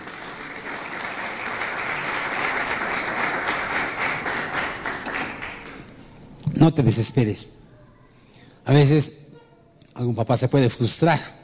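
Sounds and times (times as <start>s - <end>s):
applause: 0.0s - 5.9s
speech: 6.6s - 7.6s, 8.7s - 9.2s, 10.0s - 11.4s.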